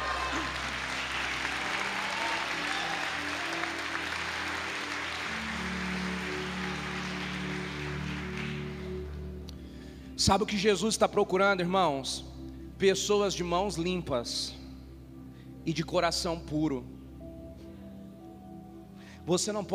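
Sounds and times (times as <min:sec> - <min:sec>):
audience applauding: 0:00.0 - 0:09.1
speech: 0:10.2 - 0:14.6, 0:15.6 - 0:16.9, 0:19.2 - 0:19.7.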